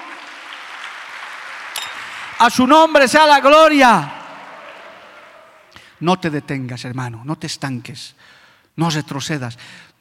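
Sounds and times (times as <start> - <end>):
audience applause: 0.0 - 5.8
speech: 2.4 - 4.2, 6.0 - 9.9.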